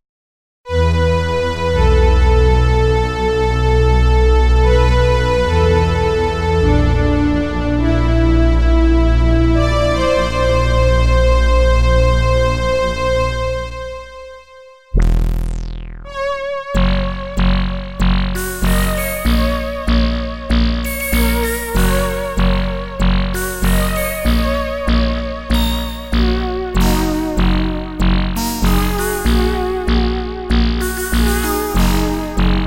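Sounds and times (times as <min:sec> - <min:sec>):
Prophet 600 synthesizer: 0:00.7 - 0:32.6.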